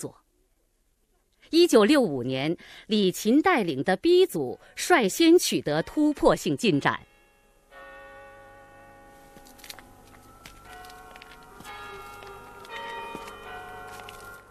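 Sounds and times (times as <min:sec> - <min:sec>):
speech: 0:00.0 - 0:00.2, 0:01.5 - 0:07.1
Customs House clock tower bell chiming: 0:05.2 - 0:14.5.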